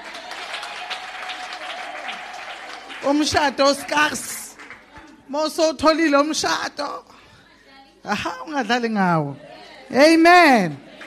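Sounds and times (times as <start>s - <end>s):
audience clapping hands: 0.0s - 5.3s
speech: 3.0s - 4.3s, 5.3s - 7.1s, 8.0s - 10.9s.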